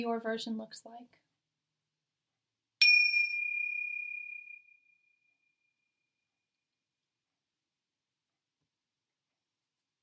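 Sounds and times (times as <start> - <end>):
speech: 0.0 - 1.2
meditation bell ringing: 2.8 - 4.6.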